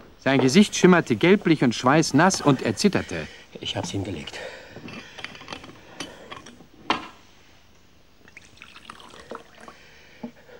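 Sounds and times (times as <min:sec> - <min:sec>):
speech: 0:00.2 - 0:04.6
whisky being poured into a glass: 0:08.2 - 0:09.9.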